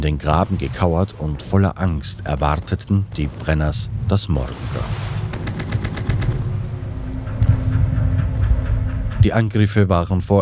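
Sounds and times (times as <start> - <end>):
speech: 0.0 - 5.2, 9.2 - 10.4
artillery salvos: 0.0 - 9.3
machine gun rattle: 4.9 - 6.4.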